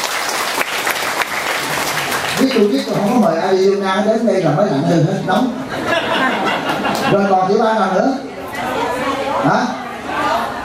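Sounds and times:
crowd audience applause: 0.0s - 3.3s
speech: 2.4s - 5.8s, 7.1s - 8.8s, 9.4s - 9.8s
laughter: 5.2s - 7.8s.

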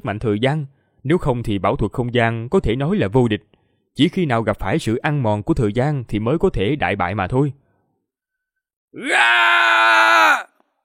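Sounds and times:
speech: 0.0s - 7.6s, 8.9s - 10.5s
void beast yelling in pain: 9.0s - 10.6s.

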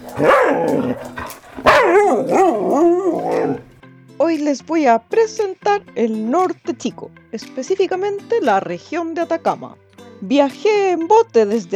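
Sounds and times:
small female dog yapping and yelping: 0.0s - 3.7s
speech: 4.4s - 11.7s.

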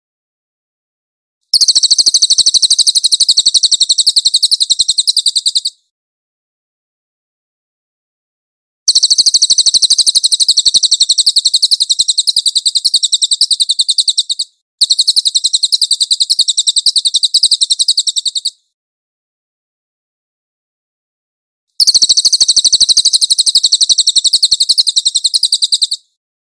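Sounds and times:
Cililin singing a shrill trill: 1.5s - 5.8s, 8.9s - 18.6s, 21.8s - 26.2s.

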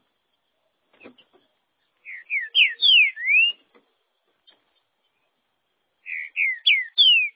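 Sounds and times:
green-winged saltator whistled song: 2.0s - 3.6s, 6.0s - 7.3s.

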